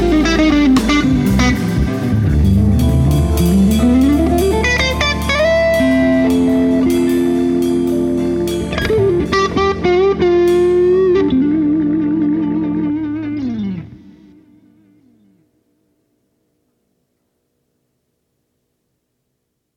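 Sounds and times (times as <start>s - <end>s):
clean slow blues guitar: 0.0s - 15.5s.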